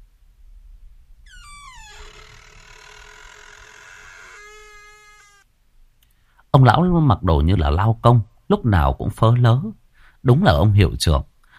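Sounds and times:
door slowly opening: 1.3s - 5.5s
speech: 6.5s - 11.3s.

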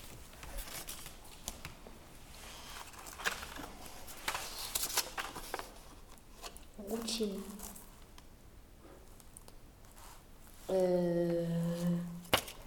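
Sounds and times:
paper sheets rustling and crinkling while shuffled: 0.0s - 8.2s
speech: 7.2s - 7.6s, 10.7s - 11.4s.

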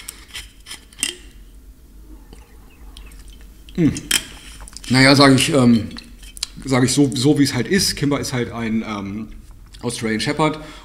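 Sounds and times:
person sipping water: 2.0s - 4.9s
speech: 3.8s - 4.1s, 4.9s - 6.0s, 6.6s - 10.8s.

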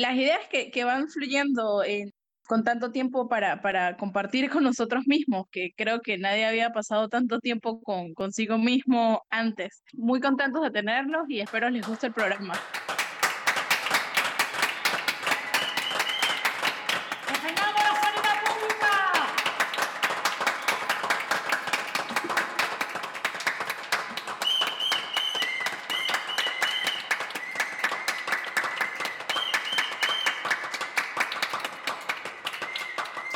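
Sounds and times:
speech: 0.0s - 13.0s
neighbours applauding from their balconies: 11.5s - 33.3s
whistles: 14.8s - 17.4s, 24.4s - 30.6s, 32.4s - 33.3s.

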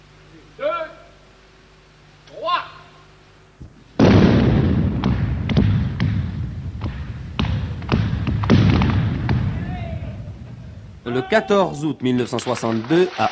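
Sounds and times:
sharp cracks and thuds: 3.6s - 11.1s
final tunnel-blasting explosion of the Mont-Blanc road tunnel in 1962: 4.0s - 11.1s
speech: 11.1s - 13.3s.

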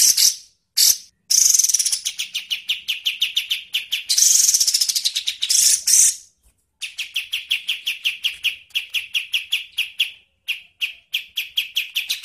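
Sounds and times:
songbird song in harsh buzzy bursts and rattling trill: 0.0s - 12.2s.

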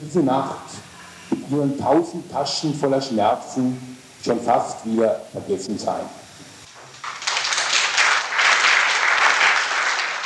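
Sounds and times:
speech: 0.1s - 0.8s, 1.5s - 6.2s
audience applause after a reading: 6.7s - 10.2s.

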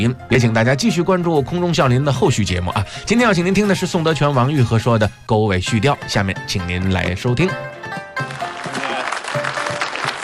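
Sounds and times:
speech: 0.0s - 8.0s
audience applause: 8.2s - 10.2s.

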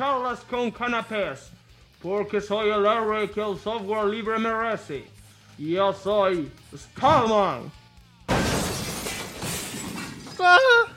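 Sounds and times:
speech: 0.0s - 7.8s, 10.4s - 10.9s
glass shattering: 8.3s - 10.8s.

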